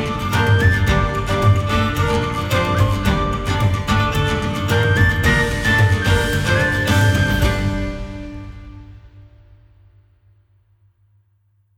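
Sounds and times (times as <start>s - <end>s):
live battle folk music: 0.0s - 8.8s.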